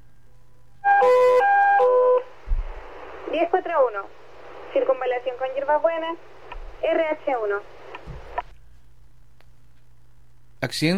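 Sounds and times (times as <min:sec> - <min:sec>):
loud electronic alarm alternating high and low tones: 0:00.9 - 0:02.1
soft low thump: 0:02.4 - 0:02.8
speech: 0:03.4 - 0:07.8, 0:10.6 - 0:10.9.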